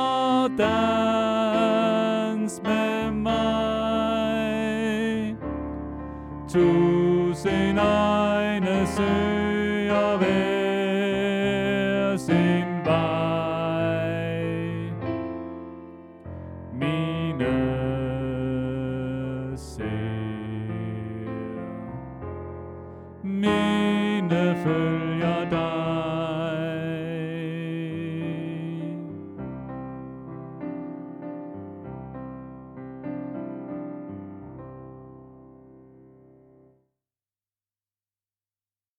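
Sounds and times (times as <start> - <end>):
tenor singing: 0.0 - 5.6, 6.5 - 15.3, 16.7 - 21.9, 23.2 - 29.4.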